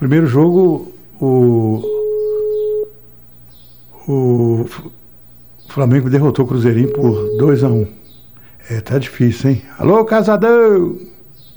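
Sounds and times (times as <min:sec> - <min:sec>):
speech: 0:00.0 - 0:02.0, 0:04.1 - 0:05.0, 0:05.6 - 0:08.0, 0:08.6 - 0:11.1
telephone ringing tone on a phone call: 0:01.2 - 0:03.2, 0:06.1 - 0:08.0.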